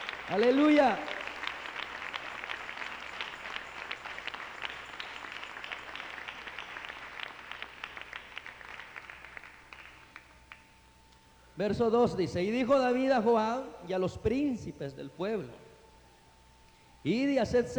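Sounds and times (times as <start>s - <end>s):
audience applauding: 0.0s - 10.7s
speech: 0.3s - 1.1s, 11.6s - 15.6s, 17.0s - 17.7s.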